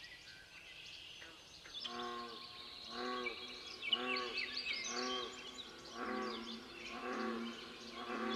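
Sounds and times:
bullfrog calling: 1.8 - 8.3.

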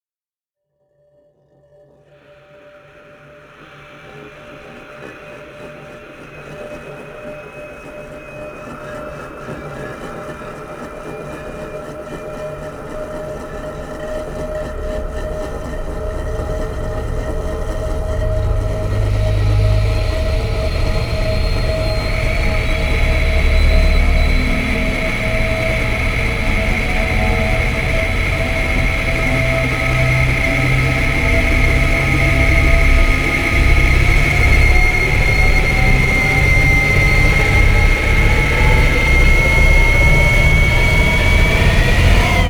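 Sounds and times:
riser sweep: 14.4 - 42.4.

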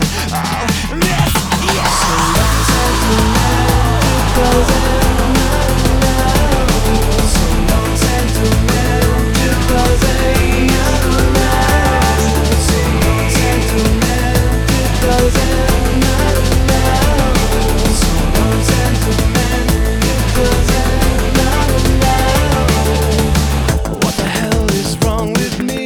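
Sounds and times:
blown out guitar chorus: 0.2 - 25.7.

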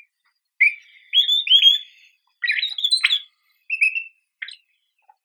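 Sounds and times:
pine grosbeak Pinicola enucleator calling: 0.6 - 4.7.

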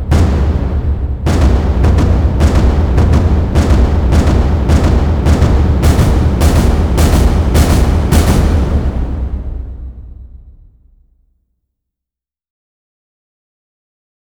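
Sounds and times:
percussion: 0.0 - 11.0.

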